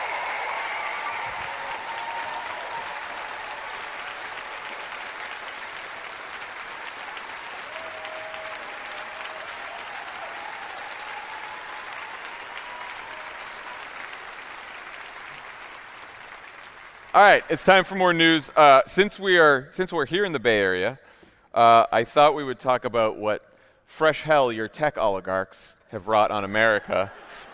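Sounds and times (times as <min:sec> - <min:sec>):
audience applause: 0:00.0 - 0:17.8
speech: 0:17.2 - 0:27.5.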